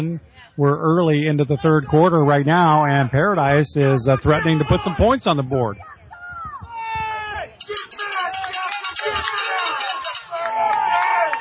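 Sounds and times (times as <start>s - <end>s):
speech: 0.0s - 5.9s
stadium crowd cheering: 5.8s - 11.3s.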